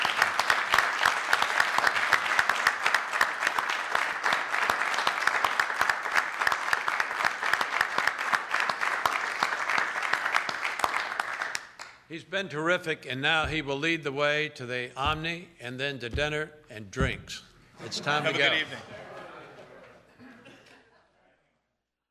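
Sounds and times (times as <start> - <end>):
audience applause: 0.0 - 12.0
speech: 12.2 - 19.0
laughter: 17.8 - 21.4.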